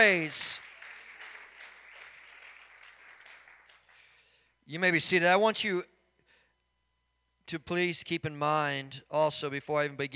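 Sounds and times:
speech: 0.0 - 0.6, 4.7 - 5.9, 7.5 - 10.1
audience hand clapping: 0.0 - 4.2.

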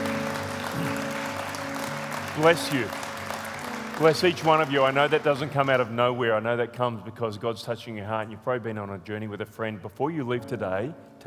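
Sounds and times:
church audience applauding: 0.0 - 6.2
speech: 2.4 - 3.0, 4.0 - 11.2.

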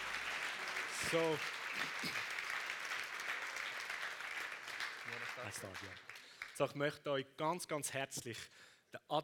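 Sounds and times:
audience applause: 0.0 - 6.6
speech: 1.1 - 2.3, 5.1 - 9.2.

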